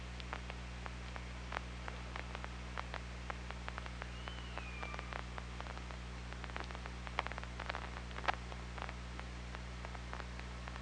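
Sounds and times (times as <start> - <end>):
steady low hum: 0.0 - 10.8
killer whale faint high whistle underwater: 4.0 - 5.3.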